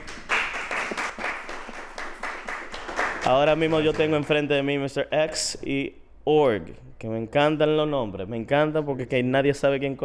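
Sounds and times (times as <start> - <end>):
audience applause: 0.0 - 3.8
speech: 3.2 - 10.0.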